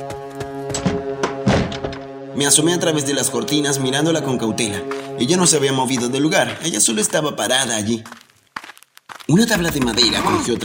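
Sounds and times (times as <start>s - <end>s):
cabin door slamming: 0.8s - 2.1s
speech: 2.4s - 8.2s, 9.3s - 10.6s.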